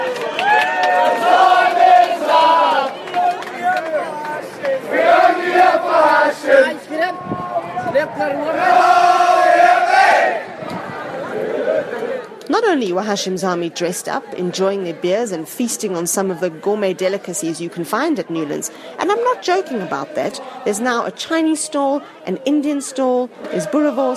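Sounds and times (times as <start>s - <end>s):
cricket stadium crowd chanting and cheering: 0.0s - 12.4s, 18.2s - 24.1s
scattered shouting: 0.4s - 10.4s
speech: 12.9s - 24.1s.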